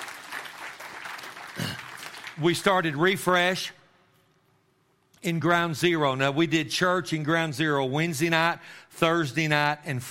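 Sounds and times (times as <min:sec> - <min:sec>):
crowd applauding: 0:00.0 - 0:02.7
speech: 0:02.4 - 0:03.8, 0:05.2 - 0:10.0.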